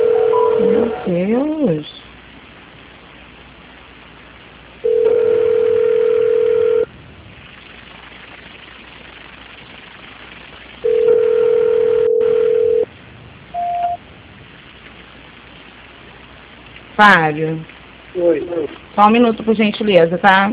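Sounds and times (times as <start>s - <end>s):
telephone line tones while a call is transferred: 0.0s - 1.3s, 4.8s - 6.9s, 10.8s - 12.9s, 13.6s - 14.0s
speech: 1.1s - 1.9s, 17.0s - 20.5s
short higher beep: 13.6s - 14.0s.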